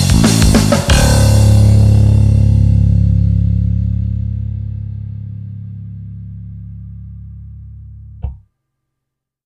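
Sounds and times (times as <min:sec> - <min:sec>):
picked electric bass in nu metal style: 0:00.0 - 0:08.4.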